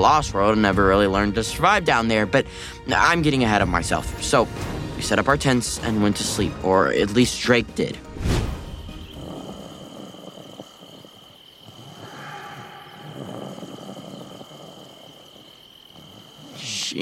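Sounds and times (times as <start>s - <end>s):
speech: 0.0s - 8.3s
loud snoring: 8.7s - 16.9s.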